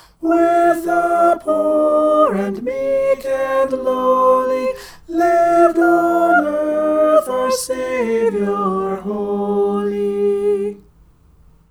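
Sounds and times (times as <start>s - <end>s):
soprano singing a carol: 0.0s - 11.0s.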